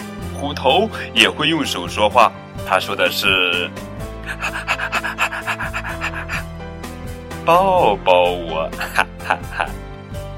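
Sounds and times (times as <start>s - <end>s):
speech: 0.4s - 6.3s, 7.5s - 9.8s
dog panting: 4.3s - 6.5s
laughter: 4.3s - 6.5s, 8.8s - 9.8s.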